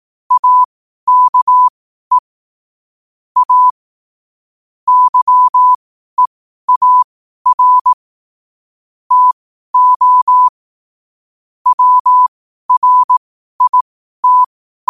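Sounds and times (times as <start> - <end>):
morse code at 5 wpm: 0.3 - 2.2, 3.4 - 3.7, 4.9 - 5.8, 6.7 - 8.0, 9.1 - 10.5, 11.7 - 14.8.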